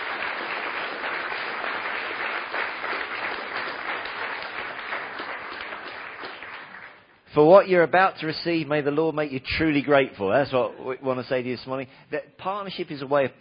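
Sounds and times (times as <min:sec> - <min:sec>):
audience applauding: 0:00.0 - 0:07.1
speech: 0:07.4 - 0:13.3.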